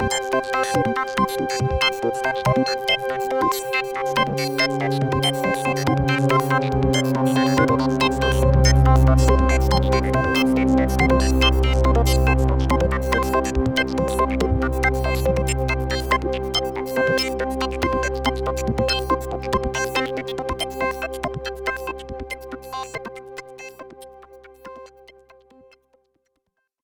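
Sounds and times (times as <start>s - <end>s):
synthesizer mix: 0.2s - 24.9s.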